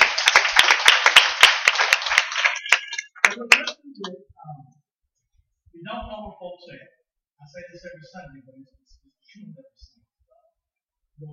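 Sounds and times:
audience applause: 0:00.0 - 0:03.8
speech: 0:03.4 - 0:04.8, 0:05.8 - 0:10.0.

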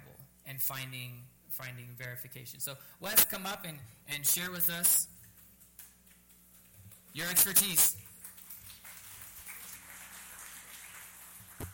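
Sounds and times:
speech: 0:00.6 - 0:05.1, 0:07.1 - 0:08.0
audience applause: 0:08.1 - 0:11.7.

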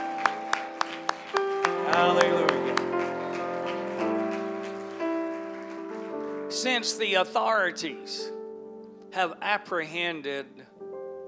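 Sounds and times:
audience clapping: 0:00.0 - 0:07.0
speech: 0:02.0 - 0:02.4, 0:06.8 - 0:08.4, 0:09.2 - 0:10.7.

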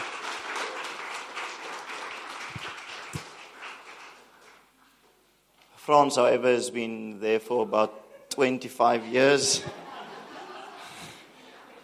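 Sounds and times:
audience clapping: 0:00.0 - 0:05.1
speech: 0:05.9 - 0:09.8
laughter: 0:07.5 - 0:11.8.

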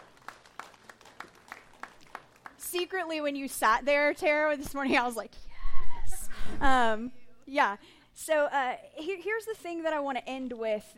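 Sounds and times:
audience applause: 0:00.0 - 0:02.6
speech: 0:02.7 - 0:05.4, 0:06.6 - 0:10.9.

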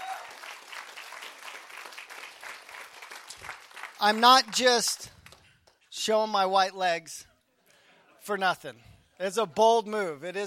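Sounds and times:
audience applause: 0:00.0 - 0:05.4
speech: 0:04.0 - 0:05.1, 0:06.0 - 0:07.3, 0:08.3 - 0:10.4.

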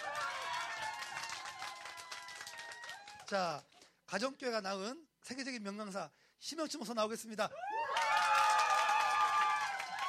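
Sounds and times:
audience cheering and shouting: 0:00.0 - 0:03.2, 0:07.6 - 0:10.0
audience clapping: 0:00.0 - 0:03.9, 0:07.8 - 0:10.0
speech: 0:03.3 - 0:07.6.

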